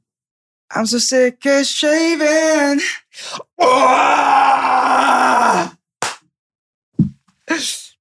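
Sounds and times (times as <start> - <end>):
speech: 0.7 - 5.8
gravelly grunting scream: 3.6 - 5.8.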